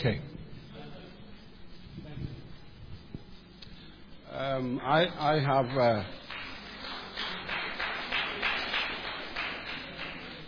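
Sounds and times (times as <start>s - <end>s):
speech: 0.0s - 0.3s, 4.4s - 6.2s
audience clapping: 5.6s - 10.4s.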